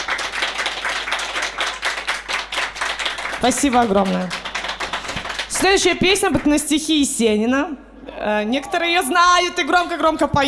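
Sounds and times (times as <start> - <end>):
enthusiastic audience applause: 0.0 - 6.5
speech: 3.4 - 4.4, 5.6 - 10.4.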